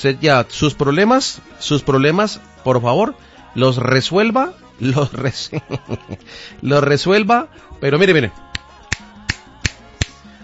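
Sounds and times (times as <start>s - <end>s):
speech: 0.0s - 8.4s
laughter: 4.9s - 6.3s
crisp finger snaps: 8.5s - 10.3s.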